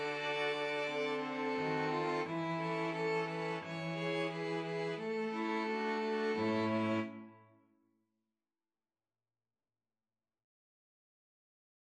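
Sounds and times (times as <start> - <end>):
string quartet: 0.0 - 7.3.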